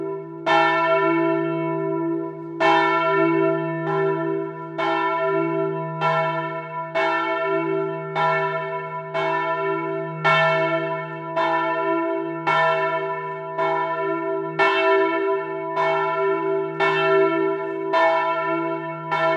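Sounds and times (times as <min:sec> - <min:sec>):
church bells ringing: 0:00.0 - 0:19.3.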